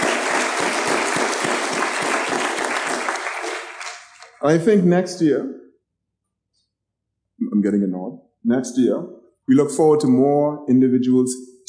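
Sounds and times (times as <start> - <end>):
audience applause: 0.0 - 4.2
speech: 4.4 - 5.6, 7.5 - 11.6.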